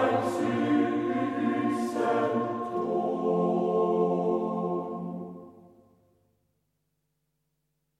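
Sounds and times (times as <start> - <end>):
choir singing: 0.0 - 5.8.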